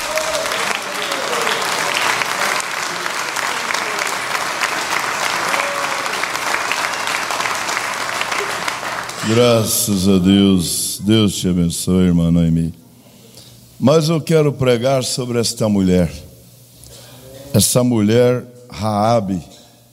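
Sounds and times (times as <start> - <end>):
audience clapping hands: 0.0 - 10.2
speech: 9.3 - 12.8, 13.8 - 16.3, 17.5 - 19.5.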